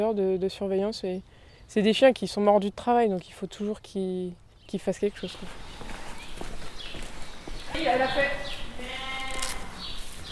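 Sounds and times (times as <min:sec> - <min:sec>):
speech: 0:00.0 - 0:05.8, 0:07.8 - 0:08.6
ewe and lamb bleating: 0:08.7 - 0:09.8.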